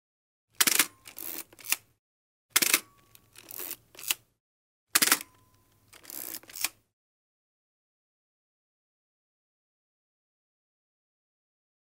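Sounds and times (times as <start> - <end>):
camera sound: 0.6 - 1.9, 2.5 - 4.2, 4.9 - 6.8.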